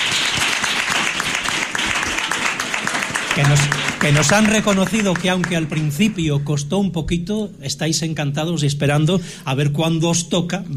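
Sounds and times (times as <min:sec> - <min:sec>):
crowd applauding for the teachers: 0:00.0 - 0:06.8
speech: 0:03.4 - 0:10.7.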